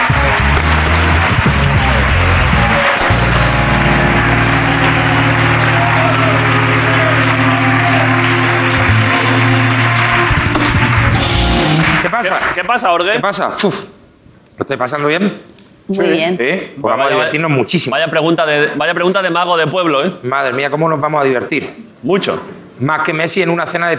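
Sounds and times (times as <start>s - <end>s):
audience applause: 0.0s - 12.8s
speech: 12.6s - 13.9s, 14.6s - 23.9s.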